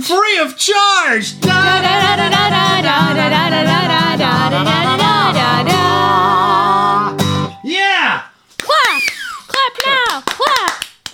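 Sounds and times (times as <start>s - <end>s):
speech: 0.0s - 5.0s
high-pitched voices whooping and drawing out long sung vowels: 1.4s - 7.2s, 8.7s - 9.5s
sharp bright hand claps in a loose rhythm: 8.6s - 11.1s.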